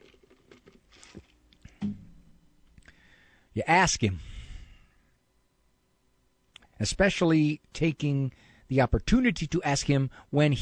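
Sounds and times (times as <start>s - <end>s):
person sipping a Coke: 0.0s - 1.8s
speech: 3.6s - 4.3s, 6.8s - 10.5s.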